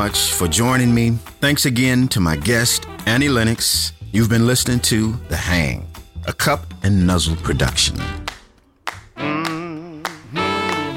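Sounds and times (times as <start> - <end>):
speech: 0.0 - 8.2
hand clapping: 8.2 - 10.9.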